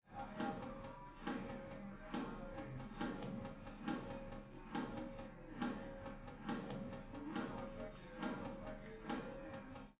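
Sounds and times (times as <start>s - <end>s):
drums playing live: 0.1s - 9.9s.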